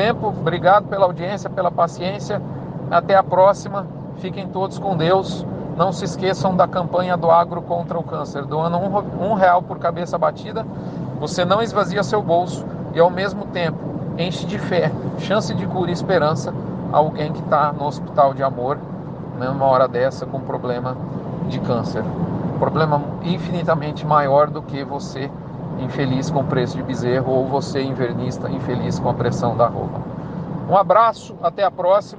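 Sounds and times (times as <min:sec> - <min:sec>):
speech: 0:00.0 - 0:30.1, 0:30.7 - 0:32.1
car interior driving noise: 0:00.0 - 0:32.1.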